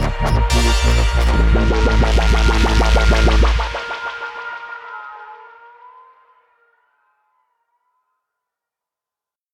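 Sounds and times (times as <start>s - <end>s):
reggae dubstep rasta music: 0.0s - 5.2s.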